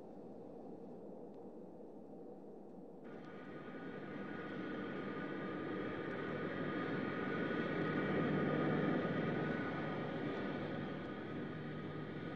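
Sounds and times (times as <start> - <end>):
jet airplane engine rumble landing: 3.1 - 12.3.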